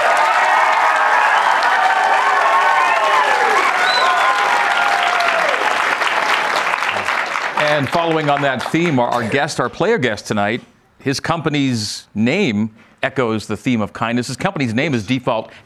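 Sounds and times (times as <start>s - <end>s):
audience cheers and whoops: 0.0s - 6.4s
large audience applauding: 0.0s - 9.6s
speech: 7.8s - 15.6s.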